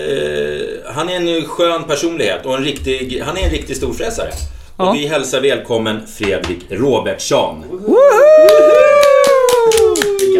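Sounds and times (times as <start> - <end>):
speech: 1.0 - 8.8
applause: 8.4 - 10.3.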